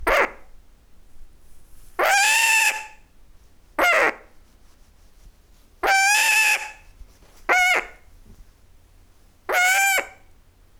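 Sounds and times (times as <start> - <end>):
owls: 0.0 - 0.4, 2.0 - 3.0, 3.8 - 4.3, 5.8 - 6.9, 7.5 - 8.0, 9.5 - 10.2.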